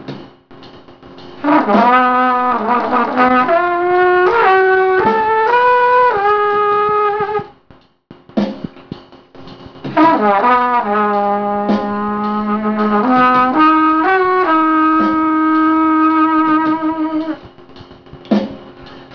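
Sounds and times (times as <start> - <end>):
clarinet with accompaniment: 1.4 - 7.5, 10.0 - 17.4.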